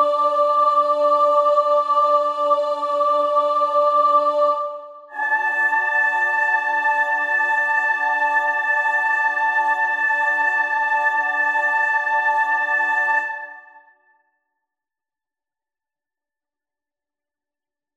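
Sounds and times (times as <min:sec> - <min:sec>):
soprano singing: 0:00.0 - 0:13.8.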